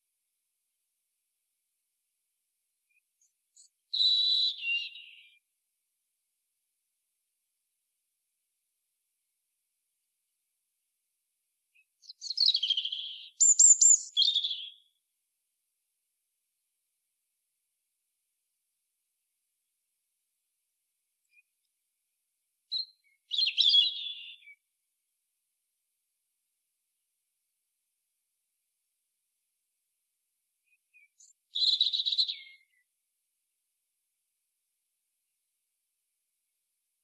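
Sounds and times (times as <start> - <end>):
European robin singing: 2.9 - 5.4, 11.8 - 15.0, 22.7 - 24.6, 30.7 - 32.9.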